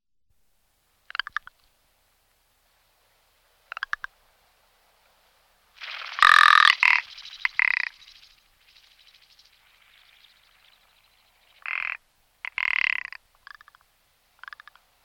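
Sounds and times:
Rock ptarmigan harsh grating croak: 5.8 - 8.1, 11.5 - 13.8, 14.4 - 14.8.

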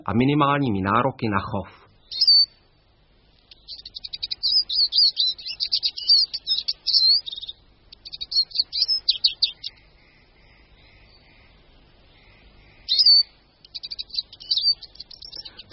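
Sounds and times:
speech: 0.0 - 1.8
Eurasian siskin twittering and wheezing: 3.5 - 15.7.

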